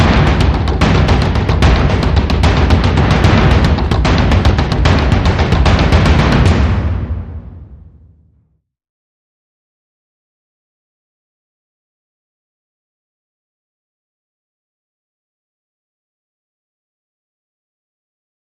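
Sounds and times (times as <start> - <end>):
mid drums: 0.0 - 8.1.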